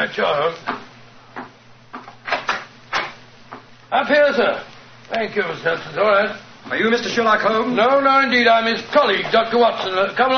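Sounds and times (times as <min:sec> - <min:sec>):
speech: 0:00.0 - 0:00.8, 0:03.9 - 0:10.3
door opening: 0:02.2 - 0:03.2.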